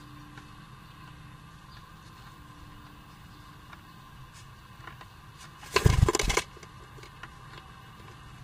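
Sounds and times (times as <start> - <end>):
nest wiggles: 5.4 - 6.5.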